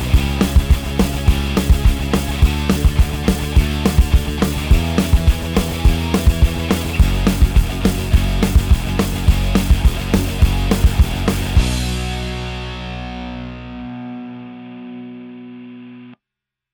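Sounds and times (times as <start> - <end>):
guitar sweep: 0.0 - 16.2.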